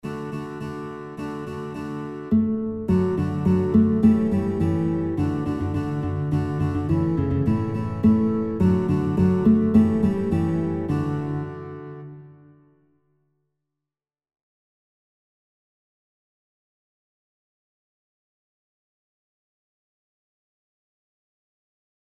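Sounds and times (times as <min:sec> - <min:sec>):
guitar playing children's songs: 0:00.0 - 0:12.9.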